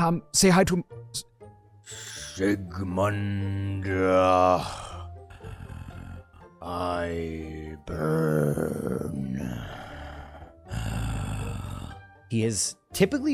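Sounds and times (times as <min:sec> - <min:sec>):
speech: 0:00.0 - 0:01.3, 0:01.9 - 0:04.9, 0:06.6 - 0:09.8, 0:12.3 - 0:13.3
indistinct words: 0:01.9 - 0:12.5
vocal creaks and groans: 0:04.6 - 0:06.5, 0:07.8 - 0:12.0.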